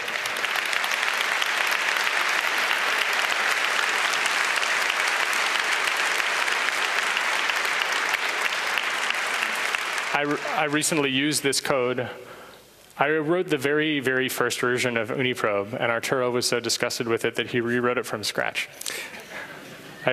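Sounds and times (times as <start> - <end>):
audience applause: 0.0 - 11.2
speech: 10.2 - 12.4, 13.0 - 19.2.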